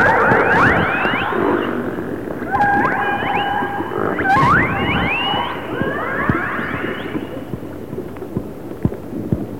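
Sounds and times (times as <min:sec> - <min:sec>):
orca call: 0:00.0 - 0:07.4.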